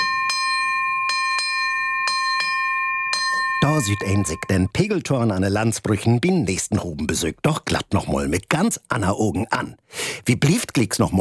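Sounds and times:
ship's bell ringing: 0:00.0 - 0:04.8
speech: 0:03.6 - 0:11.1.

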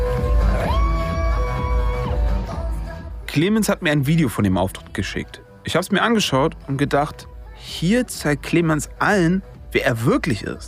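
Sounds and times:
crowd cheering at a drag performance: 0:00.0 - 0:02.9
speech: 0:03.4 - 0:10.6.

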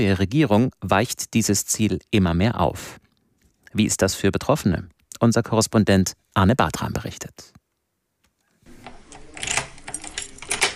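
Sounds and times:
speech: 0:00.0 - 0:03.0, 0:03.7 - 0:07.6
apartment door opening: 0:08.6 - 0:10.7.

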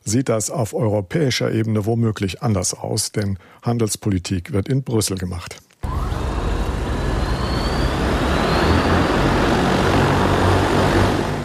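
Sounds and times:
speech: 0:00.1 - 0:05.7
Ehang electric flying taxi in flight: 0:05.8 - 0:11.4.

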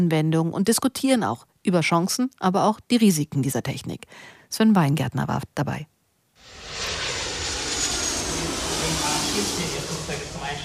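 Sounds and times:
speech: 0:00.0 - 0:05.9
airliners taking off and landing: 0:06.4 - 0:10.6.

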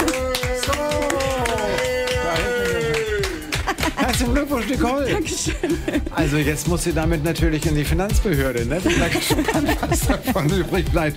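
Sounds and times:
people cheering: 0:00.0 - 0:04.8
people clapping: 0:00.0 - 0:05.9
laughter: 0:01.3 - 0:06.6, 0:08.8 - 0:10.9
speech: 0:04.2 - 0:11.1.

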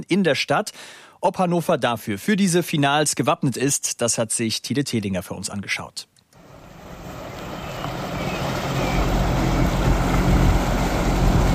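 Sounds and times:
speech: 0:00.0 - 0:06.1
tugboats towing a floating stage across the Maschsee: 0:06.4 - 0:11.5.

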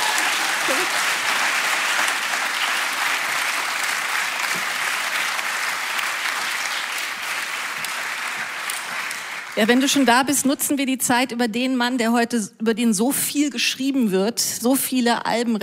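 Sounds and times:
audience applause: 0:00.0 - 0:10.1
speech: 0:09.6 - 0:15.6.

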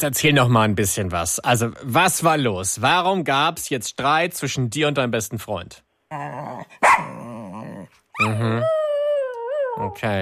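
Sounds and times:
speech: 0:00.0 - 0:07.3, 0:08.2 - 0:08.8, 0:09.8 - 0:10.1
dog whining: 0:06.1 - 0:10.0
dog barking: 0:06.8 - 0:07.2.

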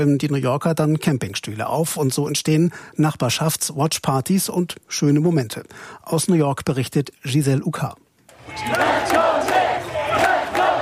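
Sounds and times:
speech: 0:00.0 - 0:09.2
hundreds of people cheering on basketball team: 0:08.4 - 0:10.8.

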